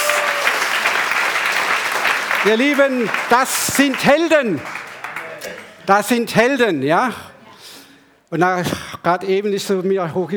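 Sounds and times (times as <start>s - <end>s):
audience applause: 0.0s - 5.9s
speech: 2.4s - 4.8s, 5.4s - 7.3s, 8.3s - 10.3s.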